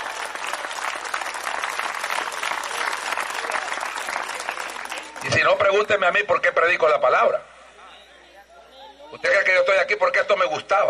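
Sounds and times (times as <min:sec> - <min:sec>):
audience applause: 0:00.0 - 0:05.6
speech: 0:05.4 - 0:07.5, 0:09.1 - 0:10.8.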